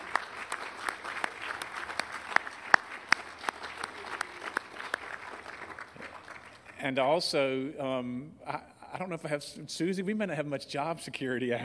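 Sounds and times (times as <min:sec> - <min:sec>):
audience applause: 0:00.0 - 0:06.8
speech: 0:06.8 - 0:11.6.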